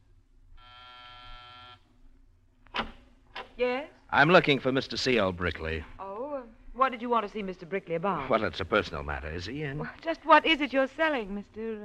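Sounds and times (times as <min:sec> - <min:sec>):
faint low hum: 0:00.0 - 0:11.8
door buzzer: 0:00.6 - 0:01.8
sharp clack: 0:02.7 - 0:03.6
speech: 0:03.6 - 0:05.9, 0:06.9 - 0:11.8.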